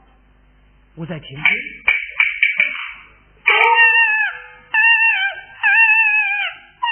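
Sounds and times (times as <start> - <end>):
speech: 1.0 - 2.0
infant crying: 3.5 - 6.9.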